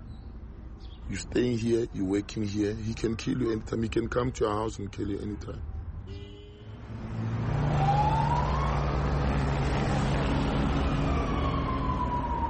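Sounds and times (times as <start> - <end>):
speech: 1.1 - 5.7
police car speeding out of the temporary police station in Dipsluit: 6.9 - 12.4.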